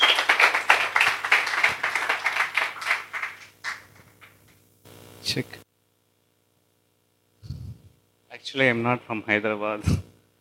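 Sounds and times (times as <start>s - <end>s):
audience clapping to welcome a speaker at a talk: 0.0s - 4.6s
speech: 5.3s - 5.6s, 8.5s - 10.1s.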